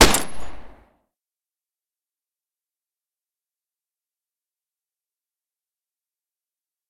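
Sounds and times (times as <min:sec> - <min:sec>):
.22 pistol firing: 0:00.0 - 0:00.8.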